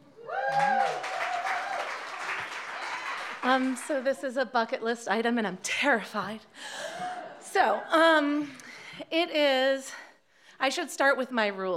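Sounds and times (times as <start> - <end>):
audience applause at a live storytelling event: 0.3 - 4.1
speech: 3.4 - 10.0, 10.6 - 11.7.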